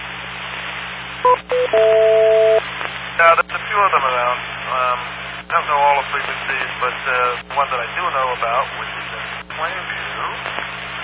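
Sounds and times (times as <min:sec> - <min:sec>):
constant hiss: 0:00.0 - 0:11.0
telephone keypad dialing tones: 0:01.3 - 0:02.6
speech: 0:03.2 - 0:11.0.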